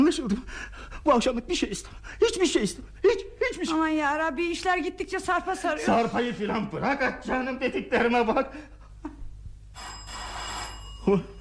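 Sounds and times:
speech: 0:00.1 - 0:08.8, 0:11.1 - 0:11.3
electric doorbell ringing: 0:09.7 - 0:11.3.

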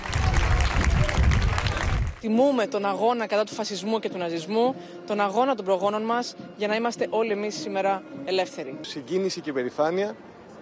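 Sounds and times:
crowd applauding at a parade: 0:00.0 - 0:02.2
speech: 0:02.2 - 0:10.6.

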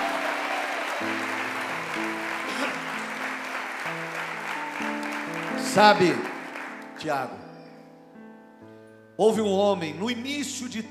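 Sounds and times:
church congregation applauding: 0:00.0 - 0:07.6
speech: 0:05.8 - 0:06.3, 0:07.0 - 0:07.5, 0:09.2 - 0:10.8.

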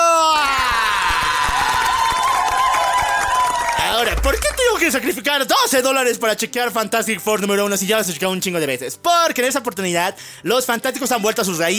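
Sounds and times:
crowd applause and cheering: 0:00.5 - 0:05.1
speech: 0:04.8 - 0:11.7.

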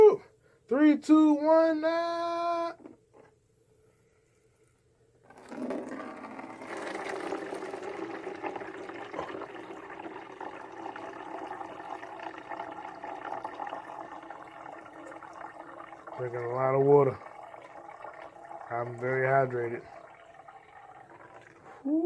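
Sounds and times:
speech: 0:00.7 - 0:02.4, 0:16.2 - 0:17.3, 0:18.7 - 0:19.9, 0:21.8 - 0:22.0
urine streaming into a jug: 0:05.3 - 0:21.9.

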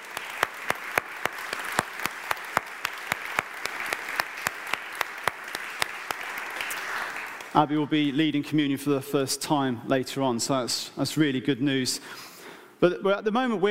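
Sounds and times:
audience applause: 0:00.0 - 0:07.6
speech: 0:07.6 - 0:13.6.

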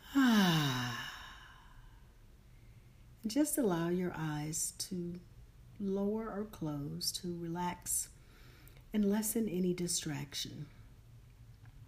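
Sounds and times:
person breathing out during a guided breathing exercise: 0:00.0 - 0:02.0
speech: 0:03.2 - 0:08.2, 0:08.9 - 0:10.8.

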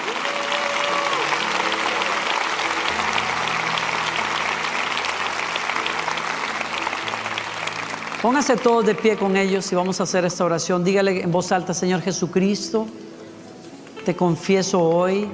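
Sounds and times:
audience applause: 0:00.0 - 0:10.2
speech: 0:08.2 - 0:13.0, 0:14.1 - 0:15.3.

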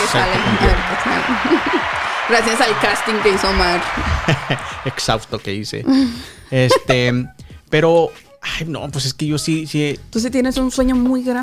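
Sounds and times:
laughter: 0:00.0 - 0:05.3, 0:05.9 - 0:07.3
applause: 0:00.0 - 0:05.5
speech: 0:00.1 - 0:11.4.

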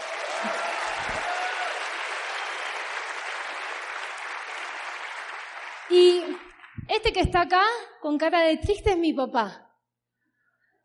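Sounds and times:
crowd applauding: 0:00.0 - 0:06.8
speech: 0:05.9 - 0:09.6.

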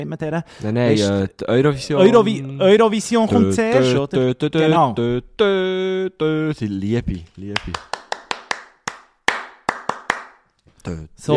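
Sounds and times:
speech: 0:00.0 - 0:08.0, 0:10.8 - 0:11.3
sharp hand claps: 0:07.6 - 0:10.5.

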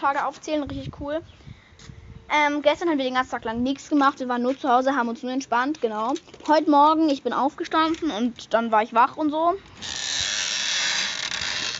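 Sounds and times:
speech: 0:00.0 - 0:10.1
chair being tilted backwards, mechanism creaking: 0:09.7 - 0:11.7.

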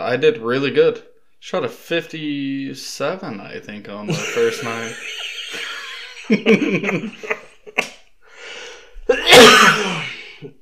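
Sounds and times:
speech: 0:00.1 - 0:05.7, 0:06.3 - 0:07.4
laughter: 0:04.1 - 0:07.9
harsh cough: 0:09.1 - 0:10.5.

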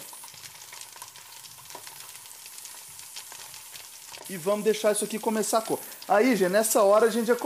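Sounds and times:
bacon frying: 0:00.0 - 0:07.4
speech: 0:04.3 - 0:07.4.

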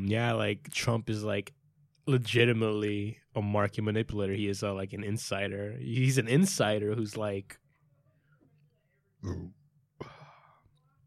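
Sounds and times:
quiet hum: 0:00.0 - 0:11.0
speech: 0:00.1 - 0:07.6, 0:09.2 - 0:10.1
loud low rumbling burp: 0:09.2 - 0:10.2.

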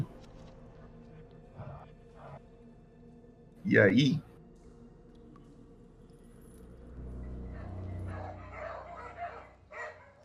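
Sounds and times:
speech: 0:03.6 - 0:04.3
dogs barking: 0:07.4 - 0:10.2.

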